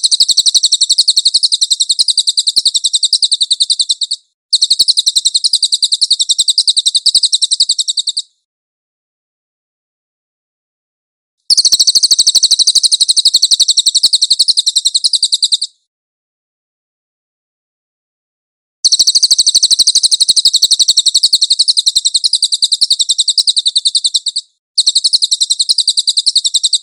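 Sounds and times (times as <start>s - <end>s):
Cililin bird giving a high chattering trill: 0.0s - 8.3s, 11.5s - 15.8s, 18.8s - 26.8s.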